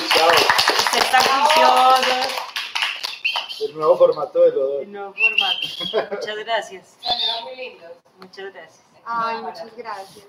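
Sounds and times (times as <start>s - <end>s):
applause from a small group: 0.0s - 3.6s
speech: 3.7s - 10.2s
laughter: 5.6s - 6.4s.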